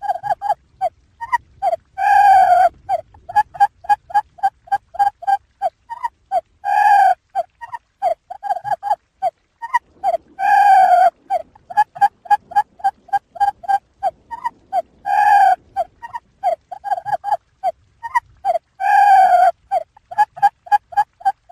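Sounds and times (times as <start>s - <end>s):
quail calling: 0.0s - 21.5s.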